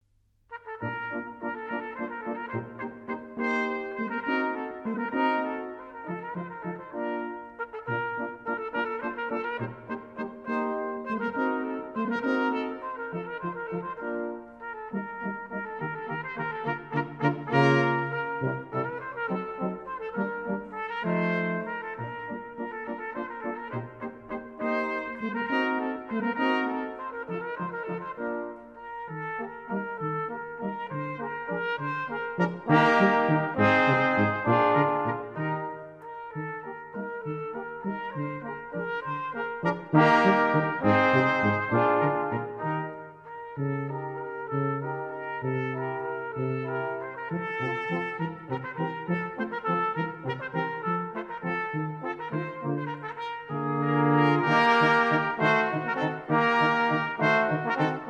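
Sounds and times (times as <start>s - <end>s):
brass quintet playing a scherzo: 0.5s - 58.0s.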